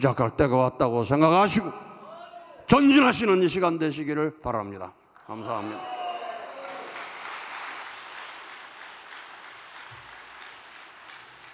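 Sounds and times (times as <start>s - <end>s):
speech: 0.0s - 1.9s, 2.7s - 6.0s
church congregation applauding after a sermon: 5.2s - 11.5s.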